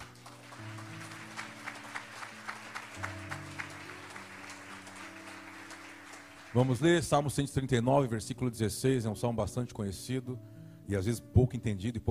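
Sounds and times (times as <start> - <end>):
audience applause: 0.0 - 7.2
speech: 6.6 - 12.0.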